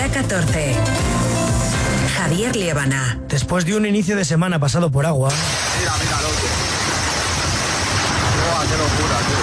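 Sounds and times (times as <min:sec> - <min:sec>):
speech: 0:00.2 - 0:01.2, 0:02.2 - 0:06.5
hailstones of up to five centimetres falling in Tarragona: 0:05.4 - 0:09.4.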